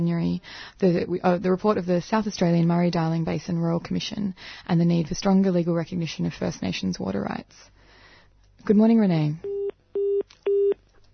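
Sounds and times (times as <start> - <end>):
speech: 0.0 - 7.8, 8.6 - 9.6
dropped phone call disconnect beeps: 9.5 - 10.8.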